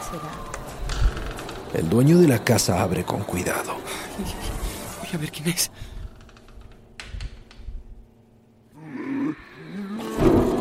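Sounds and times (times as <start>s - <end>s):
speech: 0.1s - 0.6s, 1.7s - 5.9s
wild beasts roaring and growling: 8.8s - 10.6s.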